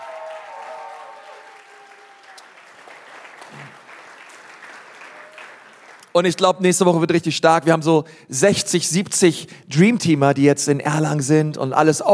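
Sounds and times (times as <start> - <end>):
audience applause in Nürnberg: 0.0 - 6.1
speech: 6.2 - 12.1.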